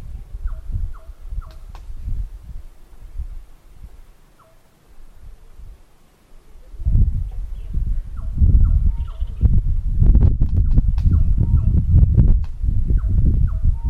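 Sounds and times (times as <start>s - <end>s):
morning birds in Kigali, Rwanda: 0.1s - 1.7s, 4.3s - 4.7s, 6.5s - 9.6s, 10.6s - 12.2s, 12.9s - 13.8s.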